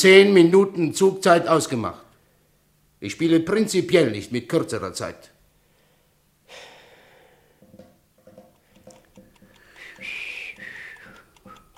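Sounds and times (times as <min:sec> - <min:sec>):
speech: 0:00.0 - 0:02.0, 0:03.0 - 0:05.3
breath: 0:05.6 - 0:07.7, 0:09.5 - 0:11.2
fingers drumming: 0:07.6 - 0:11.7
person whistling: 0:09.6 - 0:11.7.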